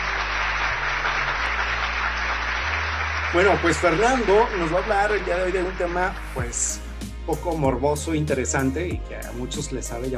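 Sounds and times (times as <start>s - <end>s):
audience applause: 0.0s - 6.4s
speech: 3.3s - 10.1s.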